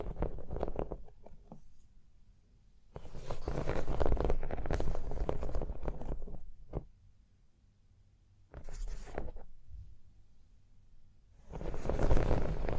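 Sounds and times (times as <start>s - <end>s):
scratching and tracing on a surface: 0.0s - 1.9s, 3.0s - 6.9s, 8.5s - 9.6s, 11.4s - 12.7s.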